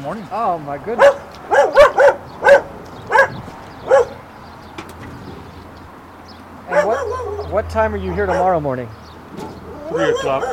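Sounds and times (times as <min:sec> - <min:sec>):
speech: 0:00.0 - 0:01.8, 0:07.5 - 0:09.0, 0:09.9 - 0:10.5
stray dog barking: 0:01.0 - 0:04.2, 0:06.7 - 0:08.6, 0:09.4 - 0:10.5.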